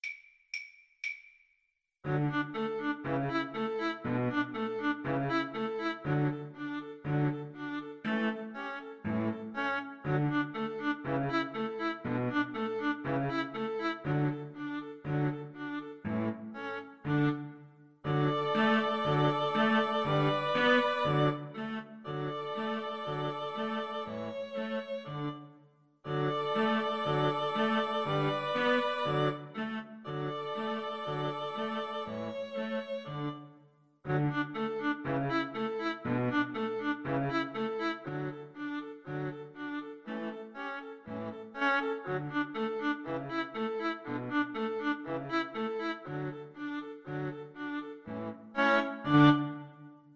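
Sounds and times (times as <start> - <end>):
string quartet: 2.0 - 33.5, 34.1 - 49.9.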